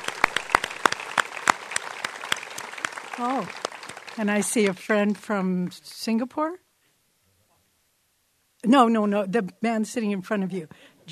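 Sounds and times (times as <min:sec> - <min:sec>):
audience clapping: 0:00.0 - 0:05.9
speech: 0:03.2 - 0:06.6, 0:08.6 - 0:11.1.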